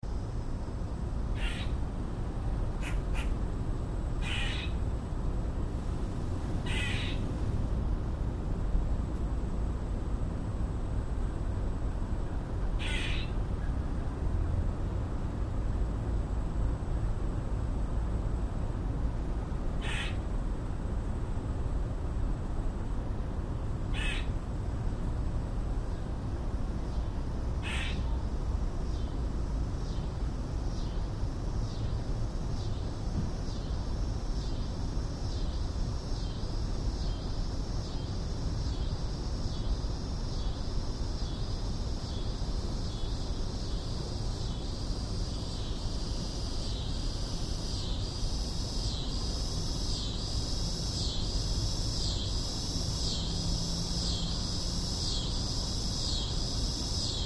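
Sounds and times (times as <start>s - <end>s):
cicadas buzzing: 0.0s - 57.2s
squirrel calls: 1.4s - 1.8s, 2.8s - 3.4s, 4.2s - 4.8s, 6.6s - 7.2s, 12.8s - 13.4s, 19.8s - 20.2s, 23.9s - 24.3s, 27.6s - 28.2s.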